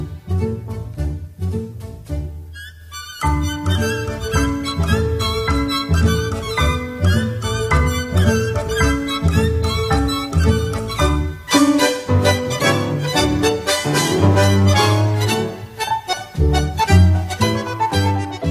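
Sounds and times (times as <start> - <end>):
milonga music: 0.0 - 18.4.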